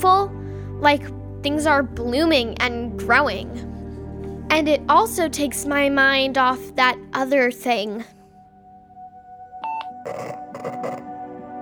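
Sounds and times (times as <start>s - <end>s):
speech: 0.0s - 3.7s, 4.5s - 8.2s, 10.0s - 11.1s
walkie-talkie static: 10.1s - 11.0s.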